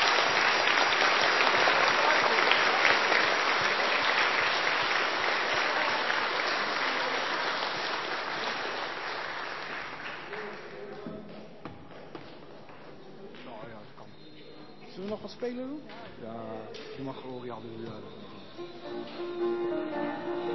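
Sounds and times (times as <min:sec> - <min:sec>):
audience applause for the choirs: 0:00.0 - 0:11.0
speech: 0:15.4 - 0:20.4.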